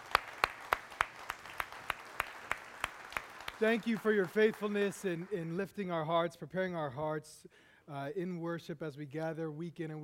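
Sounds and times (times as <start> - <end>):
audience applause: 0.0 - 5.5
speech: 3.6 - 10.0.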